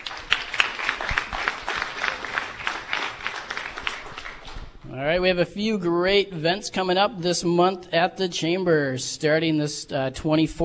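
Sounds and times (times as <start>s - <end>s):
audience applause: 0.0s - 4.8s
speech: 5.0s - 10.6s.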